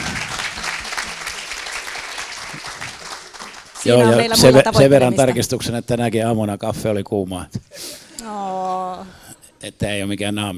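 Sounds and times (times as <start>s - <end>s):
audience applause: 0.0s - 5.5s
speech: 3.8s - 10.5s.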